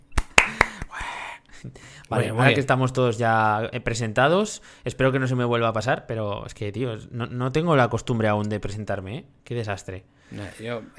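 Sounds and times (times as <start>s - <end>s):
applause: 0.2s - 1.0s
speech: 1.6s - 10.9s.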